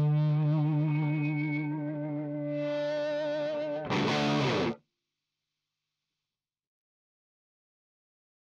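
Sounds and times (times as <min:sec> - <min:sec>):
electric guitar through humbucker on bright input: 0:00.0 - 0:04.8.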